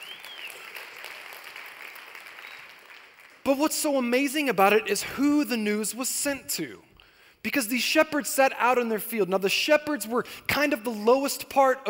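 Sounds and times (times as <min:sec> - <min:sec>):
audience applause: 0:00.0 - 0:03.4
speech: 0:03.4 - 0:11.8.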